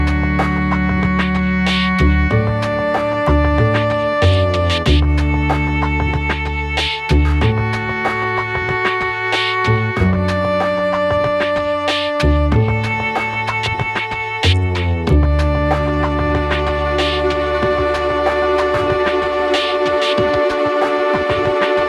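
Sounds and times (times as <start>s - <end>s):
strings: 0.0s - 21.8s.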